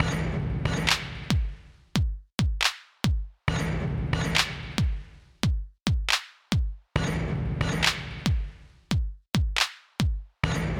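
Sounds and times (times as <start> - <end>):
drums: 0.0 - 10.7.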